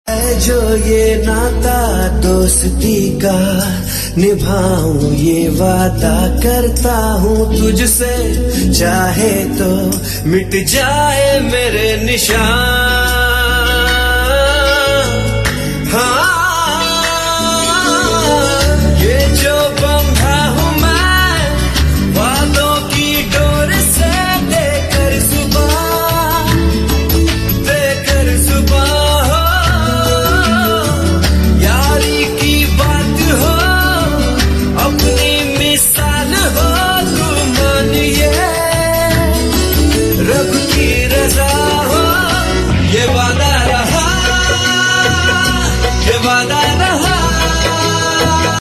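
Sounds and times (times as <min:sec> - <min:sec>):
title tune with male voice: 0:00.1 - 0:48.5.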